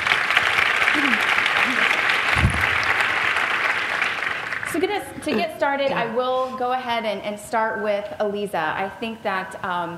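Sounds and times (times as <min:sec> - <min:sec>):
audience applause welcoming panel speakers: 0:00.0 - 0:05.0
speech: 0:05.2 - 0:09.9.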